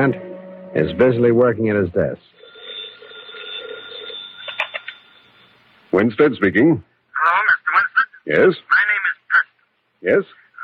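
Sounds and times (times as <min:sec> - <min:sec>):
speech: 0:00.0 - 0:02.4, 0:05.9 - 0:07.4, 0:08.2 - 0:08.9, 0:10.0 - 0:10.4
telephone bell ringing: 0:02.3 - 0:05.6.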